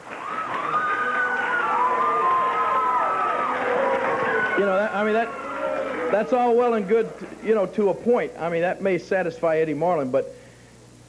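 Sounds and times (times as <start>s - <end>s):
crowd of wrestling fans cheering and clapping: 0.0s - 8.0s
speech: 4.6s - 5.4s, 6.1s - 10.4s.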